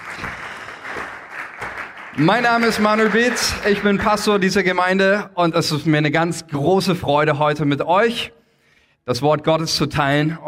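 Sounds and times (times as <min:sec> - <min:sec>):
audience applause: 0:00.0 - 0:04.8
speech: 0:02.2 - 0:08.4, 0:09.0 - 0:10.4.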